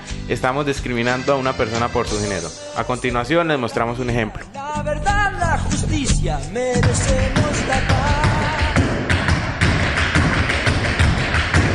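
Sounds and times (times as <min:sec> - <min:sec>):
speech: 0:00.3 - 0:08.4
tap dancing feet: 0:06.8 - 0:11.7.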